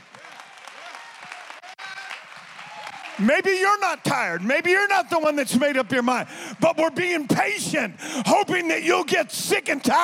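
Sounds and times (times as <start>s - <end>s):
audience clapping hands: 0.0s - 7.3s
speech: 3.2s - 10.0s.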